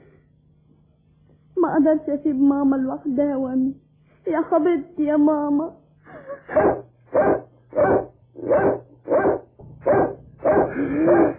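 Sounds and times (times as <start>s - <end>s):
low steady hum: 0.0s - 11.3s
speech: 1.6s - 5.8s
dog barking at night: 6.5s - 11.3s.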